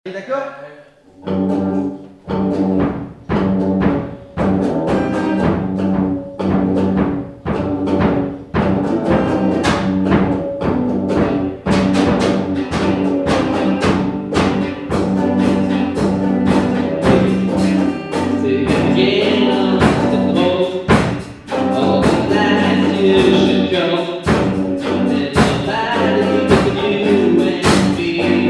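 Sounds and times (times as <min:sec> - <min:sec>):
rock and roll music: 0:01.2 - 0:28.4.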